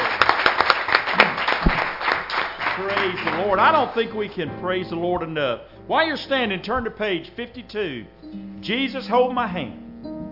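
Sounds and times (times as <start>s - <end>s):
church congregation clapping in praise: 0.0s - 4.2s
speech: 2.8s - 9.8s.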